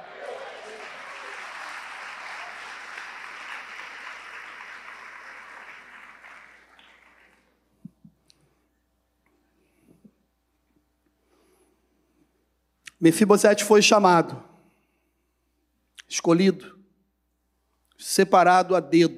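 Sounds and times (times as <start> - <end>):
laughter: 0.0 - 4.6
audience applauding: 0.0 - 7.6
speech: 13.0 - 14.5, 16.2 - 16.8, 18.1 - 19.1.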